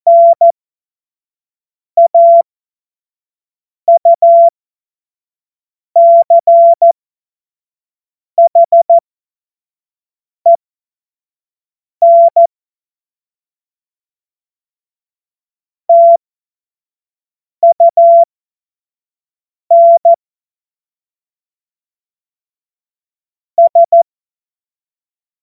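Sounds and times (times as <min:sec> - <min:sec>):
CW morse code beeps: 0:00.1 - 0:00.5, 0:02.0 - 0:02.4, 0:03.9 - 0:04.5, 0:06.0 - 0:07.0, 0:08.4 - 0:09.0, 0:12.0 - 0:12.5, 0:15.9 - 0:16.2, 0:17.6 - 0:18.3, 0:19.7 - 0:20.2, 0:23.6 - 0:24.0.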